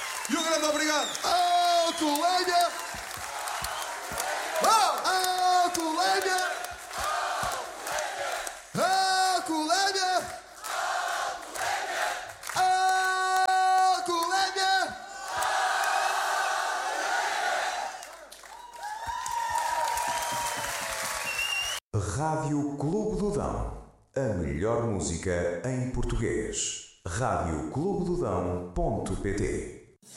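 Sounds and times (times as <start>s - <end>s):
crowd applause: 0.0s - 8.7s, 15.2s - 21.8s
crowd cheering: 0.0s - 21.8s
speech: 0.3s - 2.8s, 22.5s - 30.1s.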